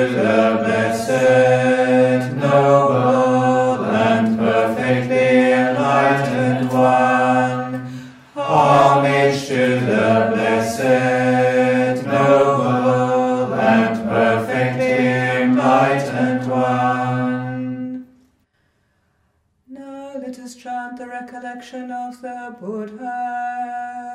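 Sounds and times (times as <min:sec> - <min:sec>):
evening chanting in English: 0:00.0 - 0:18.1.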